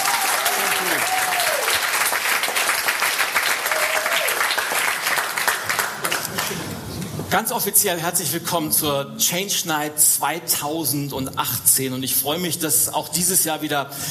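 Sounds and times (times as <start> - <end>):
audience applause: 0.0 - 7.0
speech: 7.4 - 14.0.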